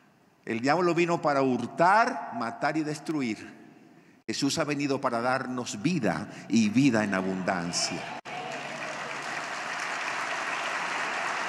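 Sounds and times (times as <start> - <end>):
speech: 0.4 - 3.6, 4.3 - 8.2
audience applause: 7.1 - 11.4.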